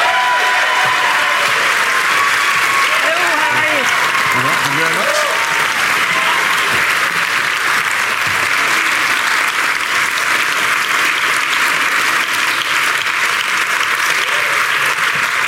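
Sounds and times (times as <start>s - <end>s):
cheers and whoops: 0.0s - 7.2s, 14.0s - 15.2s
audience applause welcoming a guest: 0.0s - 15.4s.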